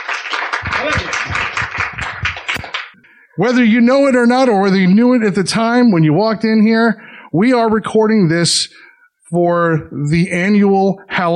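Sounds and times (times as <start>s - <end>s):
audience applause: 0.0s - 3.0s
speech: 0.8s - 1.4s, 3.4s - 11.3s.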